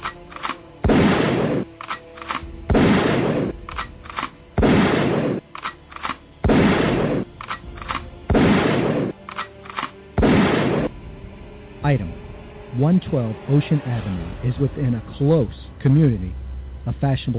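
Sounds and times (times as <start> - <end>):
hunting rifle gunshots: 0.0 - 10.9
speech: 11.9 - 12.1, 12.8 - 17.3.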